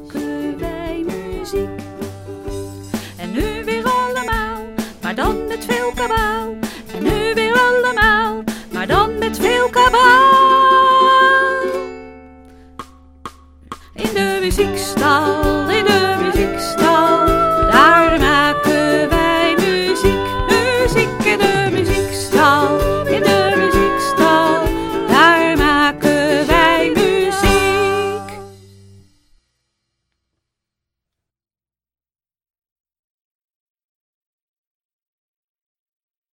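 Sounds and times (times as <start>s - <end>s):
music with singing: 0.0s - 11.8s, 13.7s - 28.6s.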